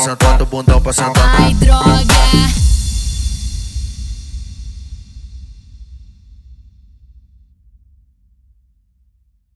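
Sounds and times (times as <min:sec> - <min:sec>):
electro funk music: 0:00.0 - 0:02.7.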